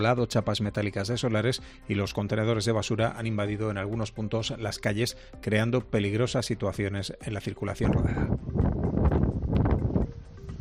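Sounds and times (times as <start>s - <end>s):
speech: 0.0s - 8.5s
storm wind: 7.9s - 10.6s.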